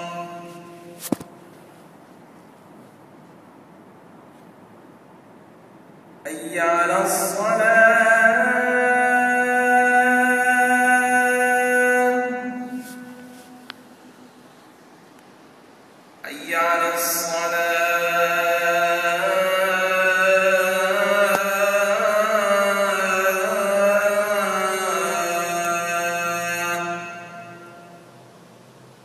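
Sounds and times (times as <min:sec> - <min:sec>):
Adhan call to prayer at the Grand Mosque in Bahrain: 0:00.0 - 0:01.3, 0:06.3 - 0:14.2, 0:16.2 - 0:28.2.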